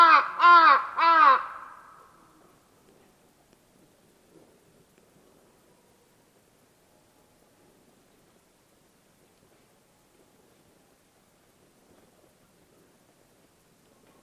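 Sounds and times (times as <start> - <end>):
bird giving harsh drawn-out caws: 0.0 - 2.2.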